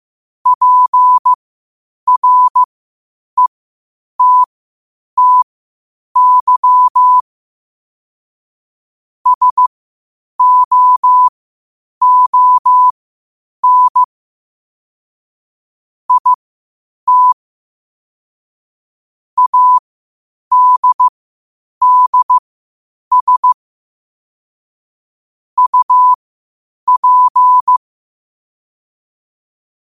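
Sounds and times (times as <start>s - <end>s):
morse code at 5 wpm: 0.5s - 1.4s, 2.1s - 2.7s, 4.2s - 4.5s, 5.2s - 5.4s, 6.2s - 7.2s, 9.3s - 9.7s, 10.4s - 11.3s, 12.0s - 12.9s, 13.6s - 14.1s, 16.1s - 16.4s, 17.1s - 17.4s, 19.4s - 19.8s, 20.5s - 21.1s, 21.8s - 22.4s, 23.1s - 23.6s, 25.6s - 26.2s, 26.9s - 27.8s.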